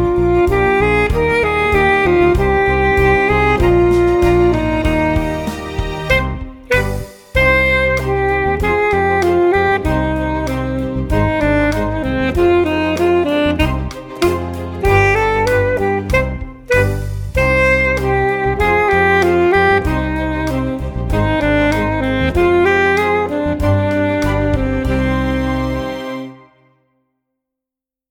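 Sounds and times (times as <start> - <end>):
saxophone playing a gavotte: 0.0 - 26.8.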